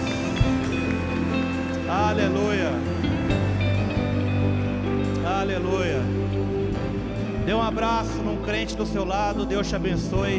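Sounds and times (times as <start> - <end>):
audience applause: 0.0 - 5.6
speech: 2.1 - 2.9, 5.4 - 6.2, 7.5 - 10.3.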